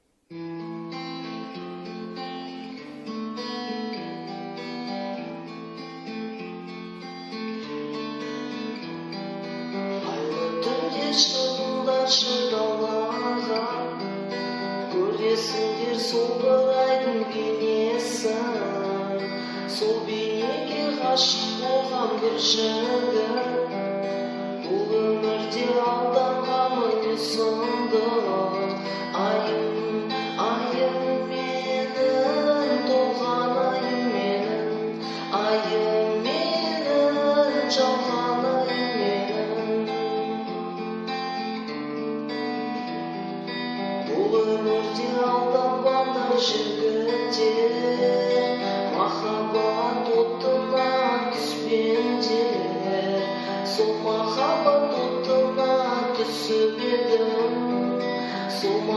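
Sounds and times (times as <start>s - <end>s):
guitar recorded on dictaphone: 0.0s - 58.9s.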